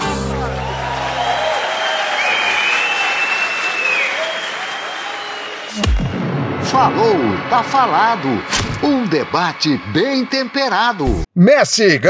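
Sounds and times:
audience applause: 0.4s - 5.8s
speech: 6.8s - 12.0s.

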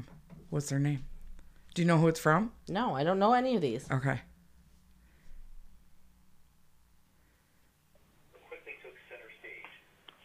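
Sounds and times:
speech: 0.5s - 1.1s, 1.8s - 4.3s
quiet talk: 8.3s - 9.9s
narrow-band telephone audio from an accidental pocket-dial voicemail: 8.3s - 10.2s.

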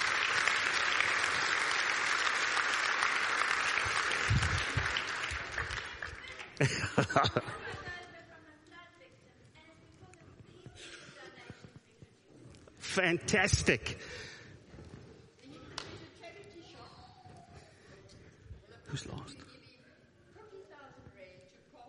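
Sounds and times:
audience clapping: 0.0s - 7.4s
chuckles: 6.6s - 7.8s
speech: 6.6s - 7.8s, 13.0s - 14.3s.

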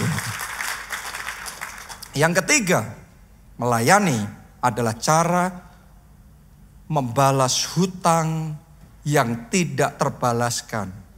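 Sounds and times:
applause: 0.0s - 2.2s
speech: 2.2s - 3.0s, 3.6s - 5.7s, 6.9s - 11.0s.

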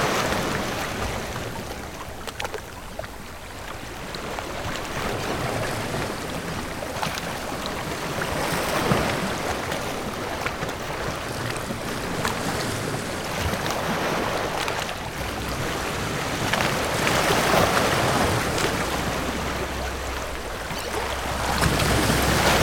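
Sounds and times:
surf and churning water: 0.0s - 22.6s
low hum: 14.6s - 22.6s.

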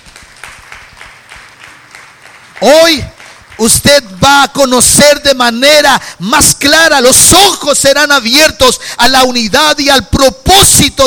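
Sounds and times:
audience applauding: 0.0s - 4.2s
speech: 2.6s - 11.0s.

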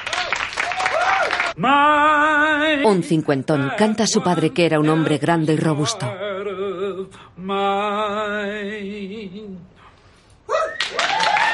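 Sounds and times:
applause after a song: 0.0s - 1.6s, 10.8s - 11.5s
speech: 1.6s - 9.7s.

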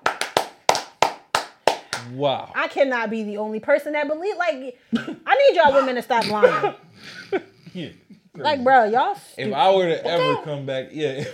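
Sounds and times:
applause: 0.0s - 2.2s
speech: 2.0s - 11.3s.

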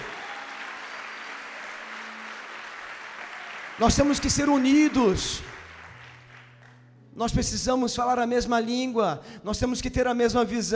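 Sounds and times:
audience applause: 0.0s - 6.8s
speech: 3.8s - 5.5s, 7.2s - 10.7s.

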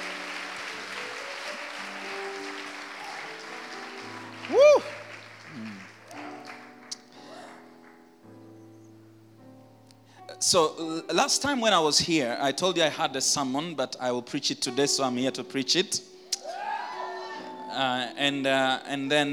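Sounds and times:
audience applause: 0.0s - 7.7s
speech: 10.5s - 16.1s, 17.8s - 19.3s.

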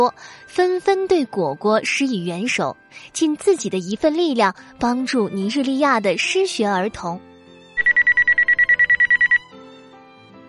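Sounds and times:
speech: 0.0s - 7.3s
wristwatch alarm ringing: 7.8s - 9.4s.

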